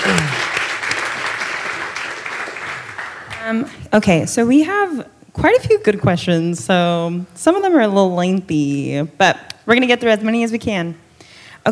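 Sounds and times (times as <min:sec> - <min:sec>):
audience clapping: 0:00.0 - 0:03.8
speech: 0:03.5 - 0:11.0.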